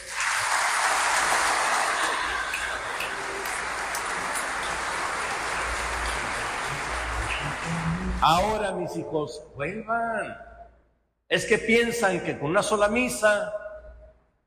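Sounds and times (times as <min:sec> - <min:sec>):
church congregation applauding during Mass: 0:00.0 - 0:08.6
speech: 0:08.2 - 0:10.5, 0:11.3 - 0:13.6.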